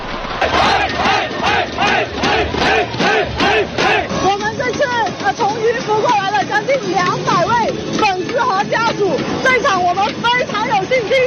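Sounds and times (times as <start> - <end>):
football fans chanting in stadium: 0.0 - 4.2
speech: 0.4 - 1.0, 3.5 - 11.2.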